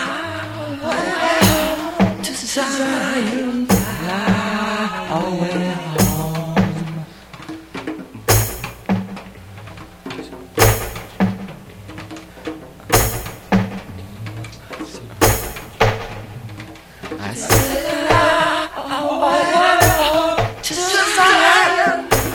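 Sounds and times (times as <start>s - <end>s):
rastaman chanting: 0.0s - 7.3s, 13.8s - 22.3s
live reggae music: 0.0s - 22.3s.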